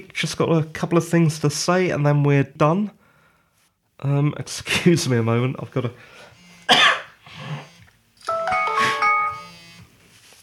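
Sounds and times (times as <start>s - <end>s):
speech: 0.2s - 3.0s, 4.0s - 6.8s
phone alarm going off for a Skype appointment: 7.7s - 9.9s.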